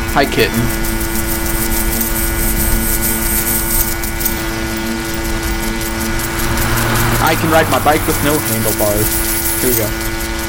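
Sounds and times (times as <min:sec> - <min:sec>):
lawn mower running: 0:00.0 - 0:10.4
speech: 0:00.2 - 0:00.9, 0:07.2 - 0:10.1.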